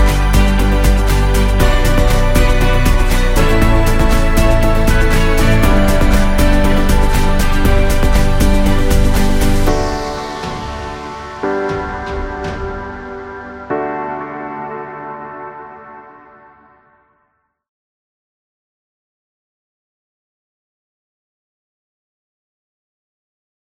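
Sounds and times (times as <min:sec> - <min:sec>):
upbeat and happy background music: 0:00.0 - 0:17.0.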